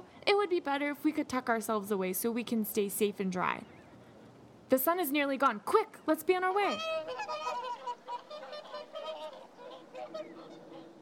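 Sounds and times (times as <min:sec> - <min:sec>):
speech: 0:00.4 - 0:03.8, 0:04.7 - 0:07.3
swans honking: 0:06.4 - 0:11.0.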